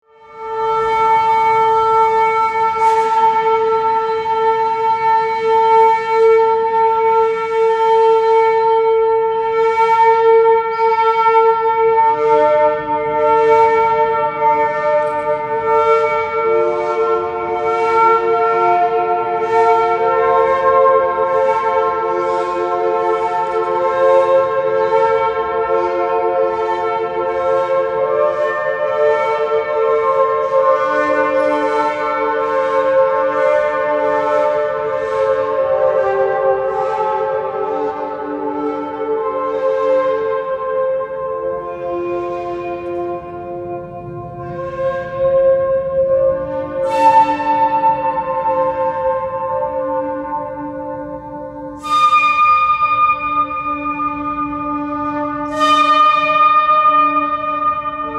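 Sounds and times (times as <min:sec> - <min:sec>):
improvised music: 0:00.4 - 0:58.1.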